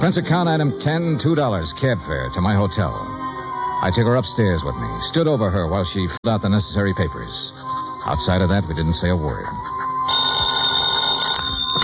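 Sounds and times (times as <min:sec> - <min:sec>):
speech: 0:00.0 - 0:03.2, 0:03.8 - 0:09.9
telephone bell ringing: 0:10.1 - 0:11.8.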